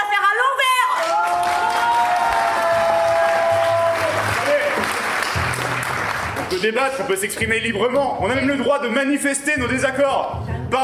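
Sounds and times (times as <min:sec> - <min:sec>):
crowd cheering: 0:00.8 - 0:06.6
audience applause: 0:01.0 - 0:07.0
speech: 0:06.6 - 0:10.8.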